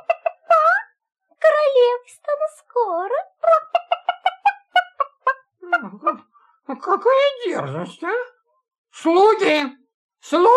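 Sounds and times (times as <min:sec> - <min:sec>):
hen cackling and squawking: 0:00.0 - 0:00.8, 0:03.5 - 0:06.3
speech: 0:02.1 - 0:03.3, 0:06.7 - 0:08.3, 0:09.0 - 0:10.5.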